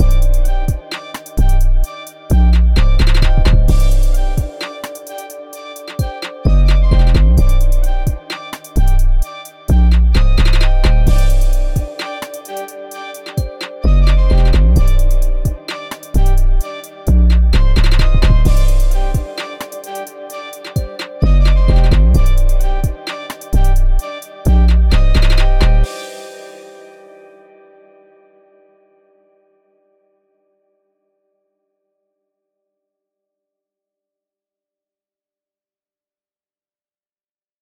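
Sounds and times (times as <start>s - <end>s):
trap beats: 0.0s - 27.0s.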